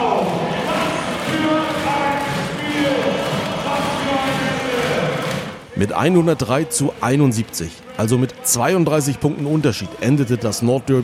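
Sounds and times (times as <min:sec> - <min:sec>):
arena crowd cheering after basketball win: 0:00.0 - 0:11.0
speech: 0:05.8 - 0:11.0.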